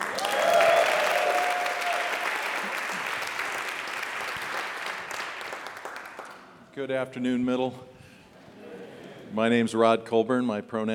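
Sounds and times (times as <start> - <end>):
faint cheers: 0.0 - 2.6
crowd applauding: 0.0 - 6.6
speech: 6.8 - 7.9, 9.3 - 10.9.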